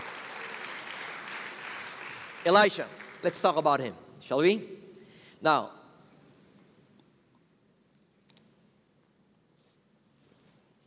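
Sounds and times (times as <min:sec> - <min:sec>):
audience applause: 0:00.0 - 0:03.5
speech: 0:02.4 - 0:04.8, 0:05.4 - 0:05.8.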